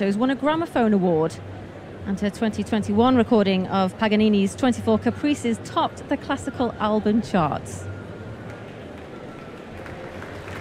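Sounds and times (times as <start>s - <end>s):
speech: 0.0s - 7.9s
concert hall applause: 8.4s - 10.5s.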